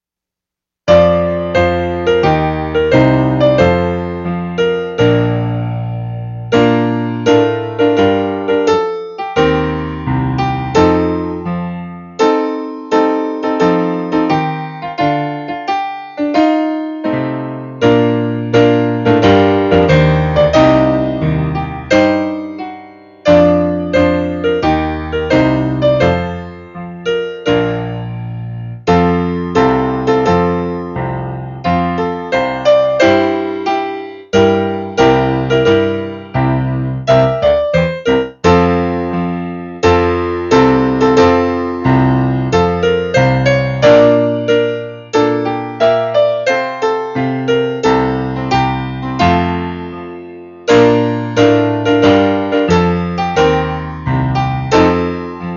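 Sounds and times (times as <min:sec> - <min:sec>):
piano: 0:00.8 - 0:55.5.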